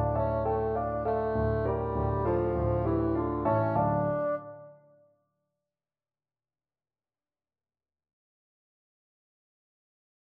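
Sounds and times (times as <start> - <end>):
bassoon playing: 0.0 - 5.0.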